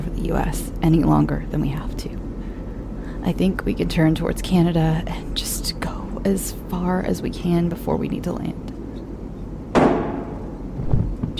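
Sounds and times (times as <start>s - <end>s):
low steady hum: 0.0s - 11.3s
speech: 0.2s - 2.2s, 3.2s - 8.6s
loud bang of something heavy hitting a cockpit bathroom door: 9.7s - 11.0s.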